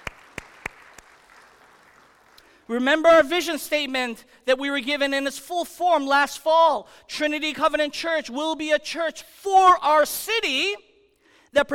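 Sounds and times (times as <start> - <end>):
faint handclaps during a church service: 0.0 - 2.6
speech: 2.7 - 10.9, 11.5 - 11.7.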